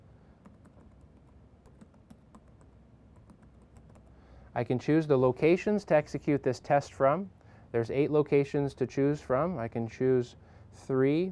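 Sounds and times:
computer keyboard typing as a URL is entered: 0:00.4 - 0:04.2
speech: 0:04.6 - 0:11.3.

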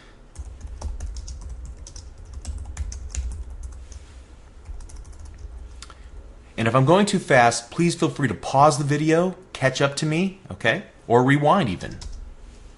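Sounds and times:
low hum: 0:00.0 - 0:12.7
typing on a computer keyboard: 0:00.4 - 0:04.0, 0:04.6 - 0:05.6
speech: 0:06.6 - 0:12.1.

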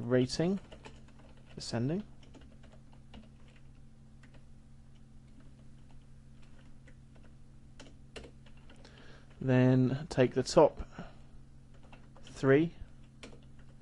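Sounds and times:
low steady hum: 0:00.0 - 0:13.7
speech: 0:00.1 - 0:00.7, 0:01.6 - 0:02.1, 0:09.4 - 0:10.9, 0:12.4 - 0:12.8
typing a database query on a computer keyboard: 0:00.6 - 0:04.4, 0:05.3 - 0:08.8, 0:11.7 - 0:12.4, 0:13.0 - 0:13.7.

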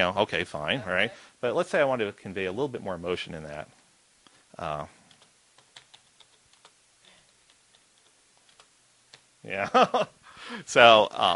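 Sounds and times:
speech: 0:00.0 - 0:03.8, 0:04.6 - 0:05.0, 0:09.4 - 0:11.3
normal typing: 0:05.0 - 0:09.3.

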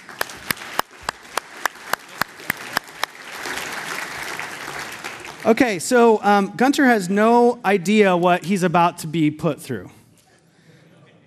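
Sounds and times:
audience applause: 0:00.0 - 0:05.9
speech: 0:05.4 - 0:10.0.

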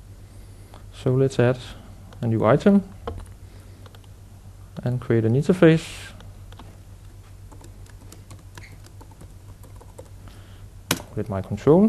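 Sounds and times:
speech: 0:01.0 - 0:03.3, 0:04.8 - 0:06.1, 0:11.2 - 0:11.8
typing on a computer keyboard: 0:07.5 - 0:10.2.

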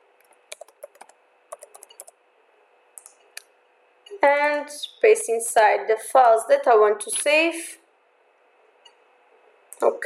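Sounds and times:
computer keyboard typing a new folder name: 0:00.2 - 0:02.2
speech: 0:04.1 - 0:07.8, 0:09.8 - 0:10.0.

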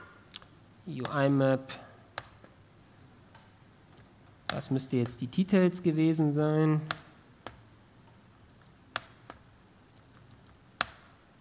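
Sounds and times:
faint steady hiss: 0:00.0 - 0:11.4
speech: 0:00.8 - 0:01.9, 0:04.6 - 0:07.0
keyboard typing: 0:06.8 - 0:07.6, 0:08.4 - 0:09.4, 0:10.0 - 0:11.2.

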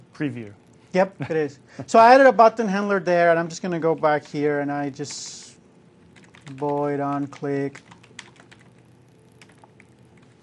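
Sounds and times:
soft hiss: 0:00.0 - 0:10.4
speech: 0:00.2 - 0:05.4, 0:06.5 - 0:07.9
code being typed on a computer keyboard: 0:06.1 - 0:10.4.

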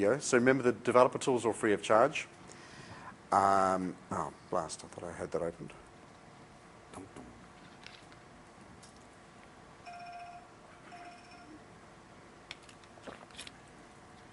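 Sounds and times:
speech: 0:00.0 - 0:02.4, 0:03.3 - 0:05.8
low hiss: 0:00.0 - 0:14.3
phone ringtone: 0:09.8 - 0:11.6.

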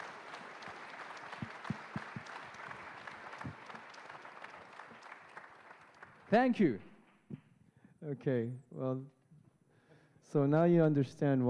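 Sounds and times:
audience applause: 0:00.0 - 0:06.6
speech: 0:06.3 - 0:06.9, 0:08.1 - 0:09.2, 0:10.3 - 0:11.4.

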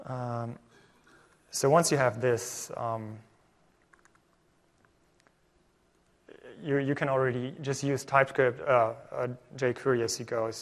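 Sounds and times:
speech: 0:00.1 - 0:00.7, 0:01.5 - 0:03.3, 0:06.6 - 0:10.6
typing on a computer keyboard: 0:03.8 - 0:04.3.

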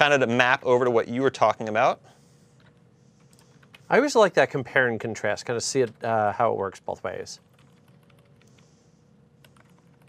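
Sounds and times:
speech: 0:00.0 - 0:02.2, 0:03.9 - 0:07.5
quiet typing on a computer keyboard: 0:07.4 - 0:08.6, 0:09.4 - 0:10.0.

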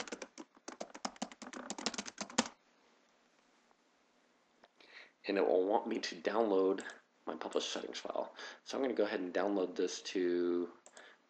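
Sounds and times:
typing a PowerShell command on a computer keyboard: 0:00.0 - 0:02.6
speech: 0:05.3 - 0:11.2.

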